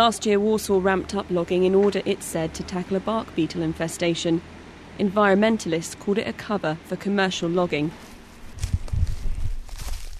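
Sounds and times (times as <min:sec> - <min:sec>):
speech: 0:00.0 - 0:08.7
faint outdoor background: 0:00.0 - 0:10.1
footsteps of people walking through Białowieża Forest: 0:08.0 - 0:10.1.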